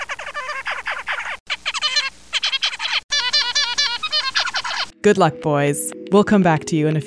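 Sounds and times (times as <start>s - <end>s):
dad zebra finch singing to his sons: 0.0s - 4.9s
speech: 5.0s - 7.0s.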